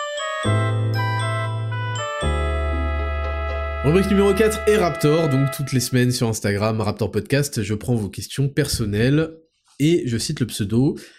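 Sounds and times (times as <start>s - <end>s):
podcast musical jingle: 0.4s - 6.0s
speech: 3.8s - 11.1s.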